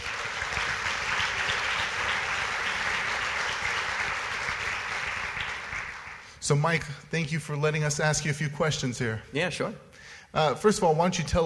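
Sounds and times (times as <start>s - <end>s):
church congregation clapping to welcome a guest: 0.0s - 6.9s
speech: 6.5s - 11.4s.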